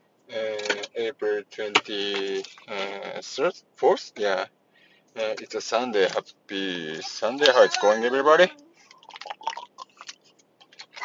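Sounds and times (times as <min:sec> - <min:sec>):
speech: 0:01.1 - 0:04.6, 0:05.2 - 0:08.6
person drinking water: 0:08.8 - 0:10.3.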